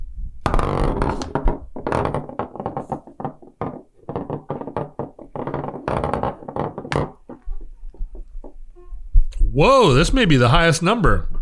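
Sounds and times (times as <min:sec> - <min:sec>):
120-sided die tumbling across a surface: 0:00.4 - 0:08.7
speech: 0:09.6 - 0:11.3.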